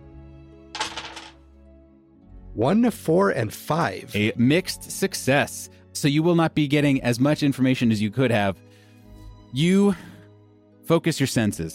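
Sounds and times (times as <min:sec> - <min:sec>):
dice tumbling onto a hard surface: 0:00.8 - 0:01.4
speech: 0:02.6 - 0:08.6, 0:09.5 - 0:10.1, 0:10.9 - 0:11.7.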